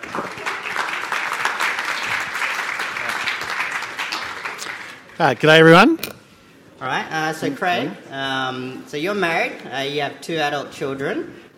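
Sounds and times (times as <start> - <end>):
crowd applause: 0.0 - 5.1
speech: 5.2 - 6.1, 6.8 - 11.4.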